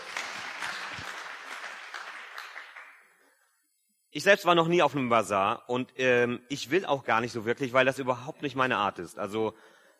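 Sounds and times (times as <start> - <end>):
audience applause: 0.0 - 3.0
speech: 4.2 - 9.8.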